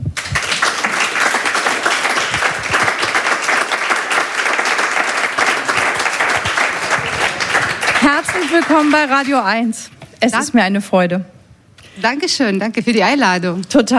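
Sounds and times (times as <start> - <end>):
audience welcome applause in a radio studio: 0.2 - 9.6
speech: 8.1 - 11.4, 12.0 - 13.9.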